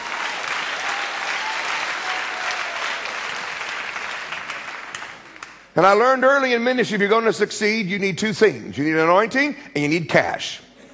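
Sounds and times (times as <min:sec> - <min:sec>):
applause: 0:00.0 - 0:05.7
speech: 0:05.8 - 0:10.6.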